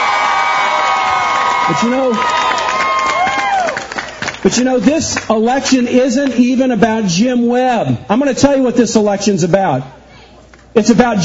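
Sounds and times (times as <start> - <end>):
crowd applause and cheering: 0.0 - 6.4
speech: 1.7 - 2.5, 4.4 - 10.0, 10.8 - 11.2.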